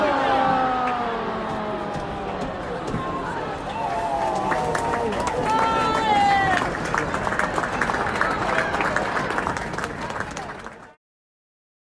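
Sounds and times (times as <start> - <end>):
women's football match at the Emirates: 0.0 - 11.0.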